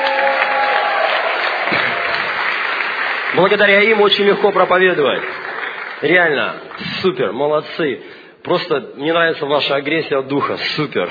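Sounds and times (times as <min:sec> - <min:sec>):
audience applause at a church sermon: 0:00.0 - 0:07.1
speech: 0:03.3 - 0:05.4, 0:06.0 - 0:11.0.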